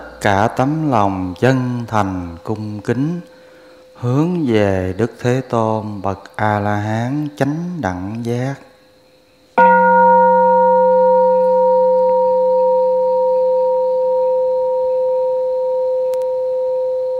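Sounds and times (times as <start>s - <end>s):
speech: 0.2s - 3.3s, 4.0s - 8.7s
temple bell being struck: 9.6s - 17.0s.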